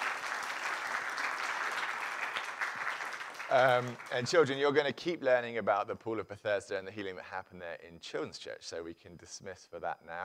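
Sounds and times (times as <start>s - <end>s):
audience applause: 0.0s - 4.8s
speech: 3.5s - 10.2s.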